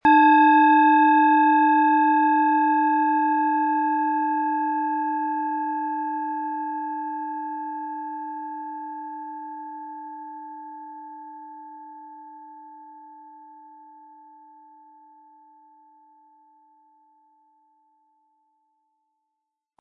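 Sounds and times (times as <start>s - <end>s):
Eros planetary singing bowl struck with mallet: 0.0s - 13.4s.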